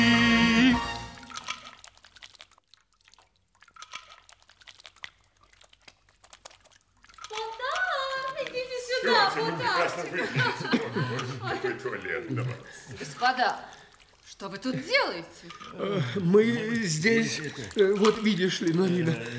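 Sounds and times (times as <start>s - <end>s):
water splashing while people wash their hands: 0.0s - 19.3s
giggling and chuckling: 7.4s - 13.8s, 14.5s - 19.3s
speech: 9.4s - 13.8s, 14.4s - 19.3s.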